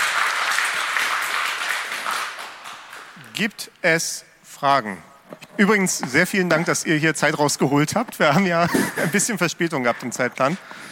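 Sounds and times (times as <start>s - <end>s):
audience applause: 0.0s - 3.2s
speech: 3.4s - 10.8s
laughter: 8.4s - 10.6s.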